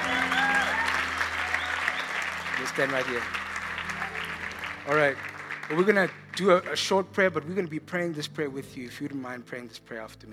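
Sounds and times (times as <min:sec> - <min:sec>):
audience clapping: 0:00.0 - 0:07.6
speech: 0:02.6 - 0:03.4, 0:04.8 - 0:10.3.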